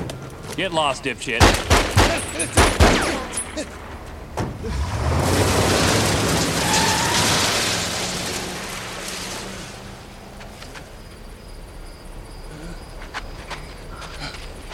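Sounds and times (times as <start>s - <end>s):
speech: 0.6s - 3.0s, 3.6s - 3.8s, 4.6s - 5.4s
burst of gunshots: 1.2s - 8.2s
car engine revving: 3.8s - 11.0s.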